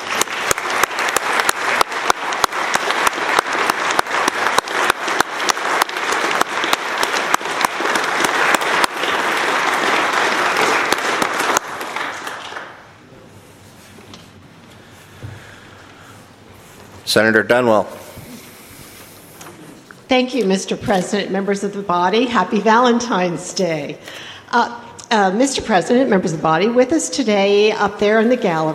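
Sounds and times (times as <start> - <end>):
round of applause: 0.0 - 13.0
speech: 17.1 - 18.0, 20.1 - 28.7.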